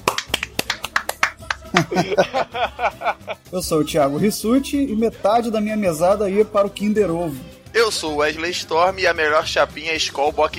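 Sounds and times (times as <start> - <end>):
round of applause: 0.0 - 2.0
laughter: 1.0 - 3.5
speech: 1.7 - 10.5.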